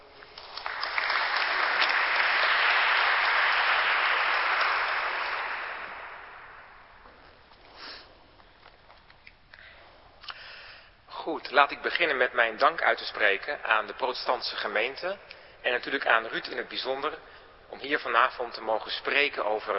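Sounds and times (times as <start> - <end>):
audience applause: 0.0 - 7.0
speech: 11.5 - 19.7.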